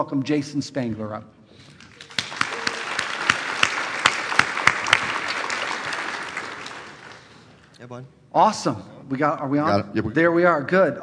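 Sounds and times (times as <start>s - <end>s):
speech: 0.0s - 1.7s, 7.8s - 11.0s
loud thunderous audience applause: 1.8s - 7.6s.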